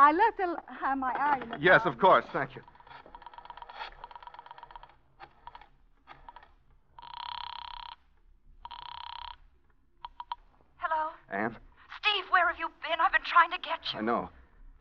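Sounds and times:
speech: 0.0s - 2.8s, 11.3s - 11.6s, 12.6s - 14.4s
clicking and rattling: 1.1s - 7.1s
telephone ringing down the line: 1.1s - 10.6s.

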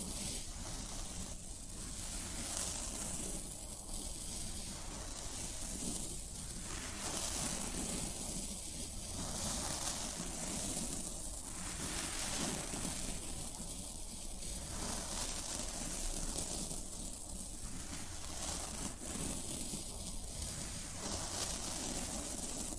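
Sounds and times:
floral foam crackling: 0.0s - 22.7s.

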